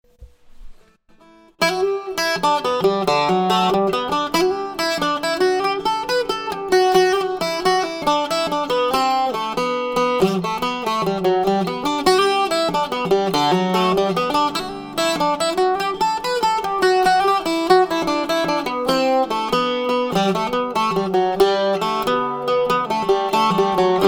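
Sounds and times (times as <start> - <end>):
bouzouki: 1.1 - 24.0.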